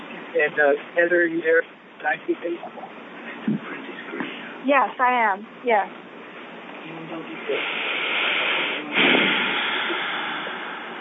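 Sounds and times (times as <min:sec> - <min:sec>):
speech: 0:00.4 - 0:03.6, 0:04.6 - 0:06.0, 0:06.9 - 0:08.1
person breathing out: 0:07.5 - 0:10.9.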